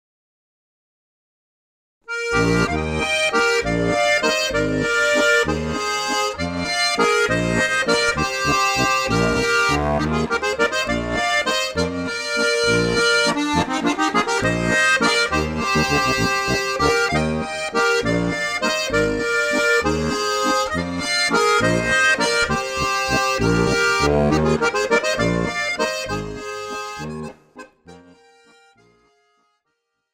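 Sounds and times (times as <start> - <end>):
waltz music: 2.1 - 29.1.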